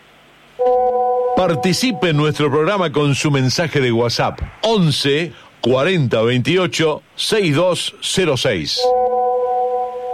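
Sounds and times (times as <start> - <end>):
faint hiss: 0.0 - 8.9
steady electronic telephone call tone: 0.6 - 2.4, 8.9 - 10.1
speech: 1.4 - 9.0.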